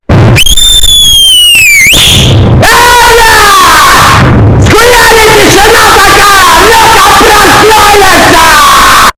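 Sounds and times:
ASMR sounds: 0:00.1 - 0:09.1.

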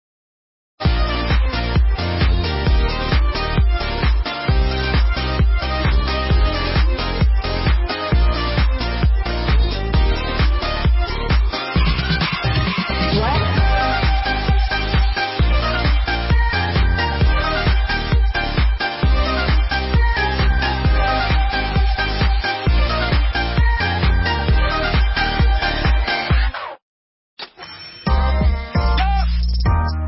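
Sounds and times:
fancy background music: 0:00.8 - 0:26.7, 0:28.0 - 0:30.0.

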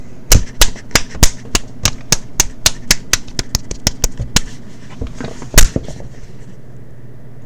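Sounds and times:
slapping attack: 0:00.3 - 0:04.6.

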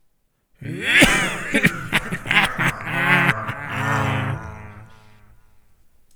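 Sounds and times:
person laughing: 0:00.6 - 0:05.4.

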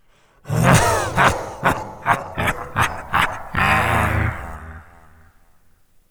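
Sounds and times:
person laughing: 0:00.5 - 0:05.2.

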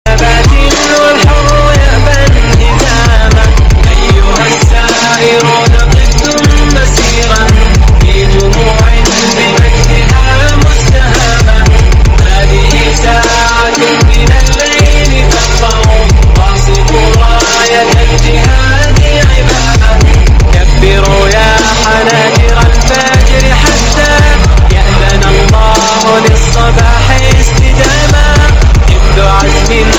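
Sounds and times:
Arabic trap music: 0:00.0 - 0:29.9.

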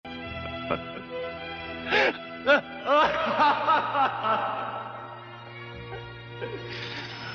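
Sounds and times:
person laughing: 0:01.9 - 0:06.7.

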